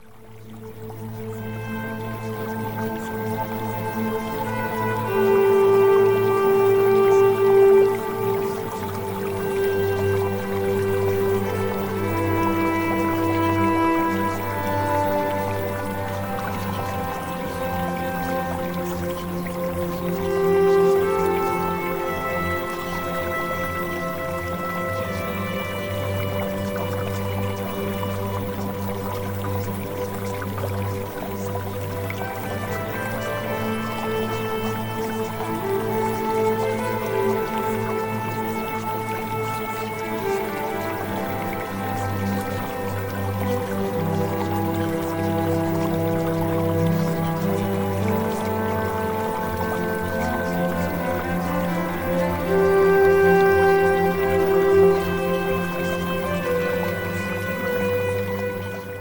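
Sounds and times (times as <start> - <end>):
music: 0.0 - 59.0.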